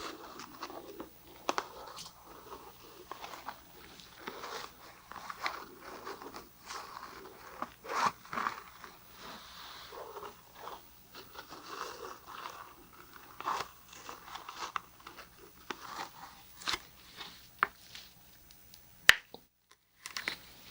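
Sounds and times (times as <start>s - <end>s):
ear massage with oil and lotion: 0.0s - 18.4s
faint low hum: 0.0s - 20.6s.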